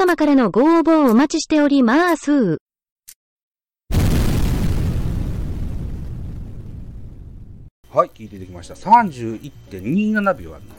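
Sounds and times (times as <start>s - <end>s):
speech: 0.0s - 2.6s, 7.9s - 10.7s
explosion sound effect: 3.9s - 7.7s.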